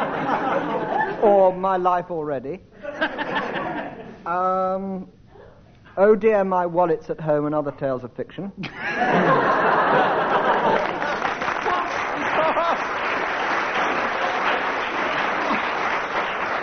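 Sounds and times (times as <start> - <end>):
laughter: 0.0 - 1.3, 2.8 - 4.2, 8.6 - 16.1
speech: 1.2 - 3.4, 4.2 - 5.2, 6.0 - 10.2
studio audience applause: 9.9 - 16.6.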